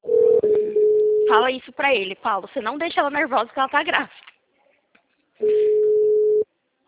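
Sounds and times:
telephone line tone as a call drops: 0.1s - 1.4s, 5.4s - 6.4s
speech: 1.3s - 4.3s, 5.4s - 5.7s.

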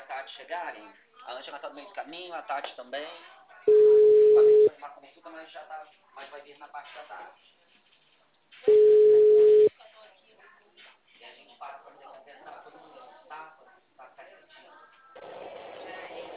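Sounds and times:
speech: 0.3s - 7.6s
person talking over the phone line: 3.7s - 4.7s
telephone tone after a dropped call: 3.7s - 4.7s, 8.7s - 9.7s.

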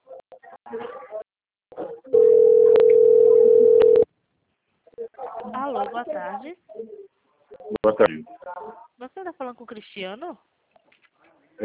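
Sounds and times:
telephone dial tone: 2.2s - 4.1s
speech: 5.9s - 7.0s, 7.8s - 8.4s, 9.2s - 10.5s.

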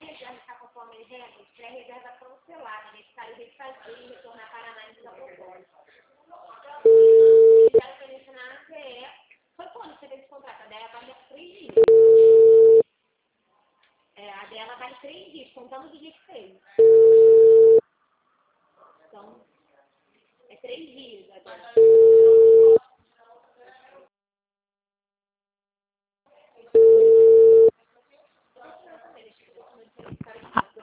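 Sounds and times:
telephone busy signal: 6.9s - 7.8s, 11.8s - 12.8s, 16.8s - 17.8s, 21.8s - 22.8s, 26.8s - 27.7s.

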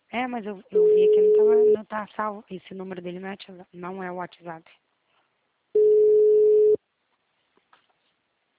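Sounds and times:
speech: 0.1s - 4.8s
phone call ringing tone beep: 0.8s - 1.8s, 5.8s - 6.8s.

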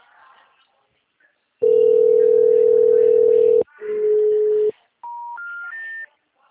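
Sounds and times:
telephone line steady low hum tone: 1.6s - 4.7s
shorter buzzy telephone line tone: 1.6s - 6.0s.

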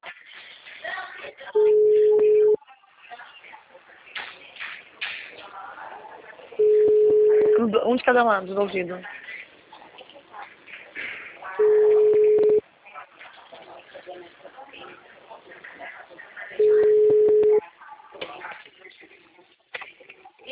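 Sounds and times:
outgoing mobile phone call ringing tone: 1.6s - 2.6s, 6.6s - 7.6s, 11.6s - 12.6s, 16.6s - 17.6s
speech: 8.0s - 9.2s.

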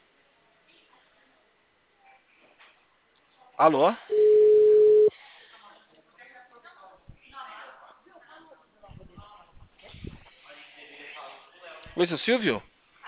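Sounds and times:
speech: 3.6s - 4.3s, 12.0s - 12.7s
telephone tone after line disconnects: 4.1s - 5.1s.

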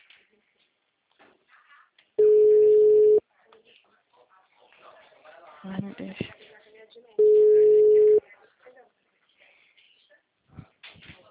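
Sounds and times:
WhatsApp call ringing tone: 2.2s - 3.2s, 7.2s - 8.2s
speech: 5.6s - 6.4s.

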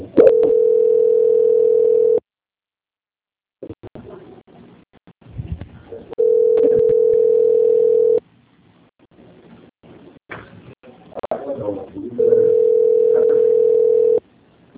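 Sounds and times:
telephone call transfer tone: 0.2s - 2.2s, 6.2s - 8.2s, 12.2s - 14.2s.

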